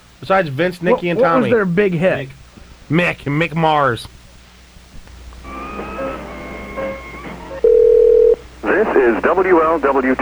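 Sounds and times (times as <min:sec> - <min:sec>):
speech: 0:00.2 - 0:04.2, 0:08.8 - 0:10.1
telephone dialing beeps: 0:07.6 - 0:08.4.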